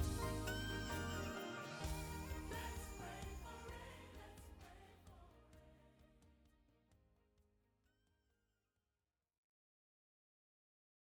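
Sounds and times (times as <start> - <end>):
instrumental backing vocals: 0.0 - 5.4.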